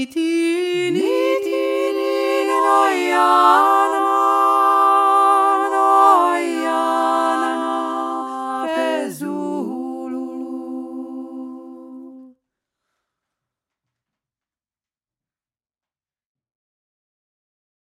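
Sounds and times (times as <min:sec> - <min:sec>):
three-part singing: 0:00.0 - 0:12.3.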